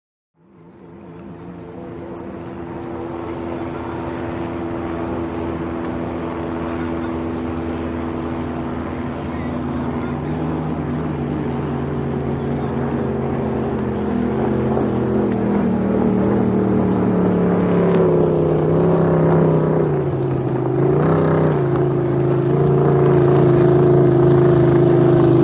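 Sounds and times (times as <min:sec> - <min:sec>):
hydroplane dock ambience: 0:00.6 - 0:25.4.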